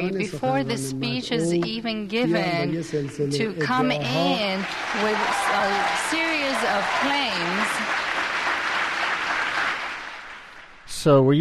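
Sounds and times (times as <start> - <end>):
speech: 0.0 - 8.0, 11.0 - 11.4
audience cheering and applause for Ahmadinejad: 3.8 - 10.8.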